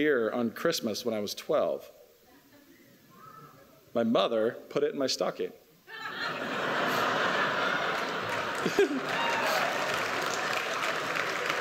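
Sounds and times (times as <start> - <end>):
speech: 0.0 - 2.0, 4.0 - 6.0, 8.6 - 9.6
laughter: 5.9 - 9.7
audience applause: 6.6 - 11.6.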